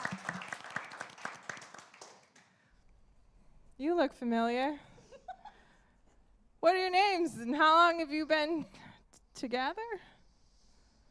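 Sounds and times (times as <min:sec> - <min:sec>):
audience clapping: 0:00.0 - 0:02.6
speech: 0:03.8 - 0:04.9, 0:06.6 - 0:08.8, 0:09.4 - 0:10.1.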